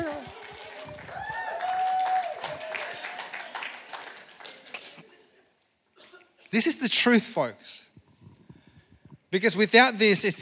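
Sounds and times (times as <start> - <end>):
voices cheering: 0.0 - 4.5
crowd applauding: 0.0 - 5.4
speech: 6.5 - 7.8, 9.3 - 10.4.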